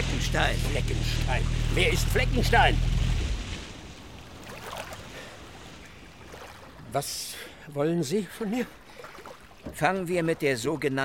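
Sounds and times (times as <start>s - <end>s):
boat on water: 0.0s - 11.0s
waves lapping: 0.0s - 11.0s
speech: 0.2s - 3.0s, 6.9s - 8.8s, 9.6s - 11.0s.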